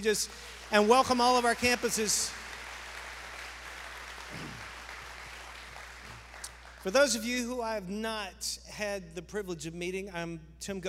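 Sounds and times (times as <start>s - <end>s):
speech: 0.0s - 2.4s, 6.8s - 10.8s
applause: 0.0s - 7.1s.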